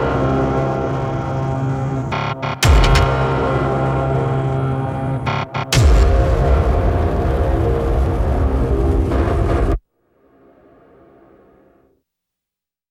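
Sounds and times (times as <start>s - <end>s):
music track: 0.0s - 9.7s.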